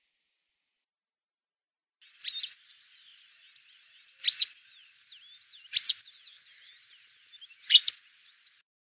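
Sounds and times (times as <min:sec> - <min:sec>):
citrine wagtail calls: 0:02.1 - 0:08.6
soft twittering: 0:02.1 - 0:08.6.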